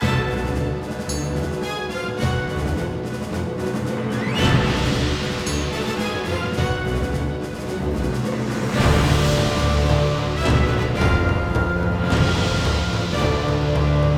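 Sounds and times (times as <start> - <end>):
boss combat game music: 0.0 - 14.1.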